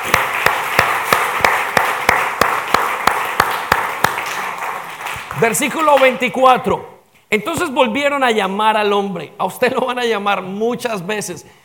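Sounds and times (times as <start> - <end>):
audience applause: 0.0 - 6.2
speech: 5.4 - 11.6.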